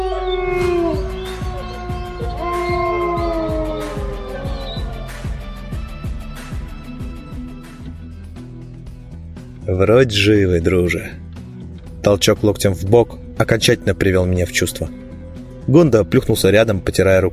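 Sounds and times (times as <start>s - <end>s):
pack of beasts howling in disappointment after losing its prey: 0.0s - 5.4s
speech: 9.8s - 11.2s, 12.1s - 15.0s, 15.7s - 17.3s.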